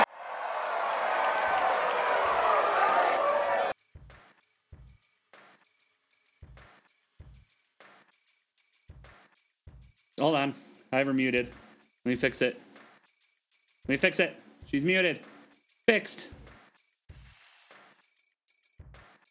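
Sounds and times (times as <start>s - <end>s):
crowd applause and cheering: 0.0s - 3.8s
speech: 10.2s - 12.7s, 13.9s - 15.3s, 15.9s - 16.4s.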